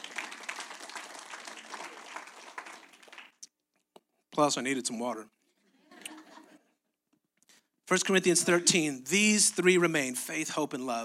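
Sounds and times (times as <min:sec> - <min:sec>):
audience clapping: 0:00.0 - 0:03.5
speech: 0:04.4 - 0:05.4, 0:07.9 - 0:11.0
laughter: 0:05.6 - 0:06.8.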